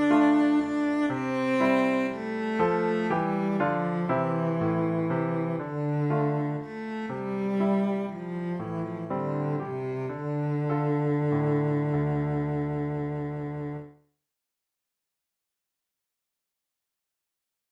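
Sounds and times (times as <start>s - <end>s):
cello: 0.0s - 14.1s.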